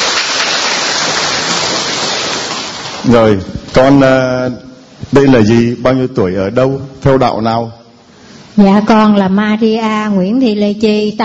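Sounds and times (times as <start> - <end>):
applause: 0.0 - 3.1
speech: 3.0 - 7.8, 8.6 - 11.2.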